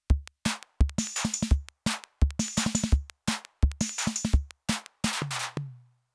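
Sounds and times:
music beat: 0.1s - 5.7s.

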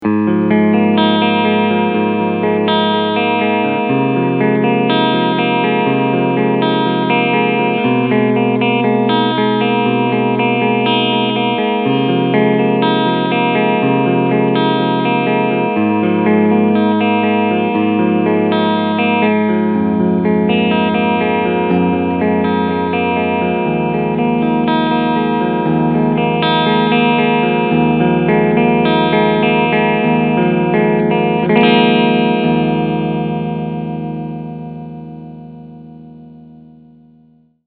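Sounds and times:
Extreme 76 BK clean electric guitar with both humbuckers: 0.0s - 37.6s.

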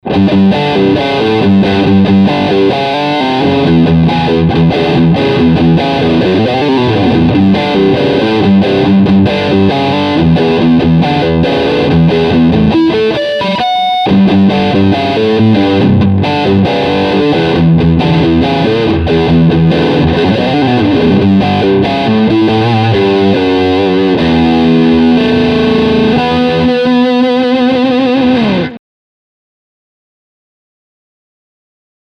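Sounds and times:
high gain electric guitar riff: 0.0s - 28.8s.

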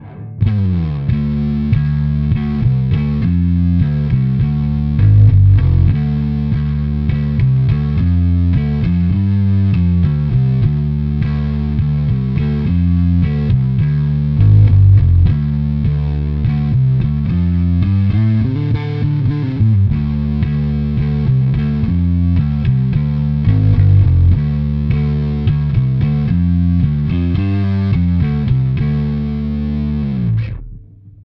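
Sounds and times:
Big Muff fuzz pedal clean channel: 0.0s - 31.2s.

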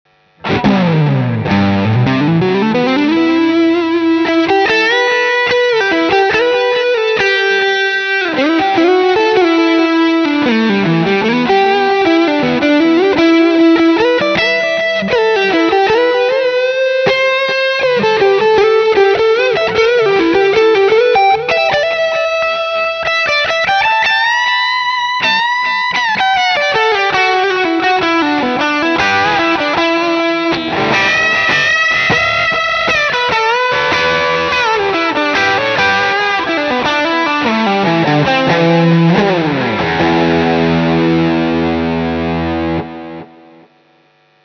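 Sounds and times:
Vintera II Tele Deluxe electric guitar lead: 0.2s - 44.4s.

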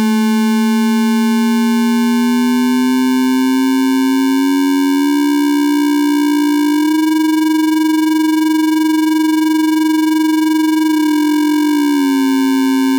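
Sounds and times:
E-RM Polygogo synthesizer cycle parameter sweep: 0.2s - 12.9s.

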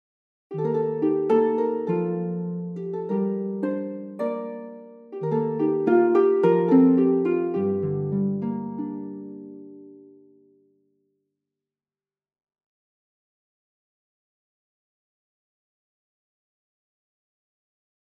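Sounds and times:
harp: 0.5s - 10.6s.

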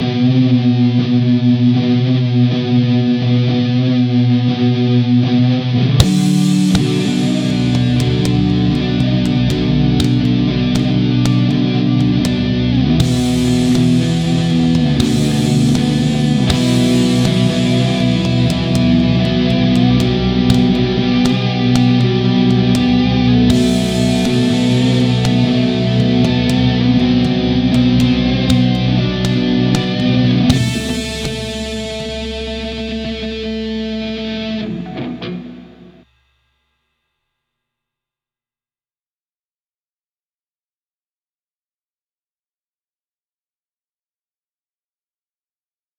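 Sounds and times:
FGN J Standard Mythic 7 guitar neck pickup: 0.0s - 36.1s.

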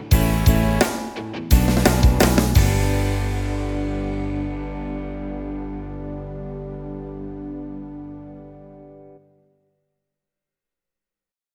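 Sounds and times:
Yamaha PSR SX700 SX900 grunge rock style: 0.0s - 9.1s.

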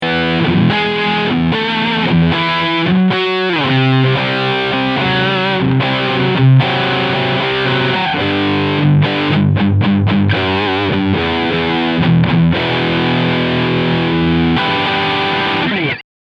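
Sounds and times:
PRS guitar riff on a Steg humbucker: 0.0s - 16.0s.

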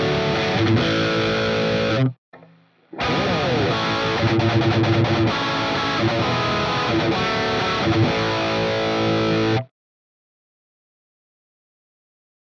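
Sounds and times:
Jackson AS Virtuoso SHP high gain guitar riff: 0.0s - 9.7s.

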